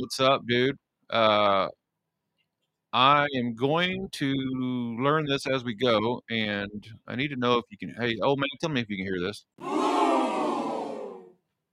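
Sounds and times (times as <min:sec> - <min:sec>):
speech: 0:00.0 - 0:01.8, 0:02.9 - 0:09.9
crowd booing: 0:09.6 - 0:11.4.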